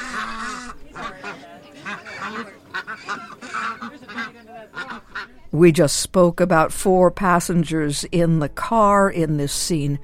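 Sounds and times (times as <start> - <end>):
Canada geese honking: 0.0 - 5.4
speech: 5.6 - 10.0.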